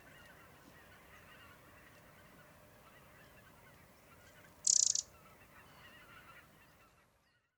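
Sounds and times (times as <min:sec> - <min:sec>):
faint background birds: 0:00.0 - 0:07.5
Eurasian wren rattle call: 0:04.6 - 0:05.1.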